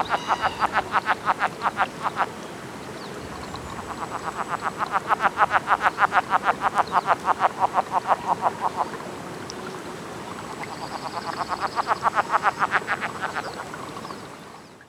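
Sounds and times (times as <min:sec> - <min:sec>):
speech: 0:00.0 - 0:02.2, 0:05.7 - 0:09.3, 0:11.1 - 0:13.3
Cascades frog encounter calls: 0:00.0 - 0:02.3, 0:03.4 - 0:09.0, 0:10.5 - 0:13.7.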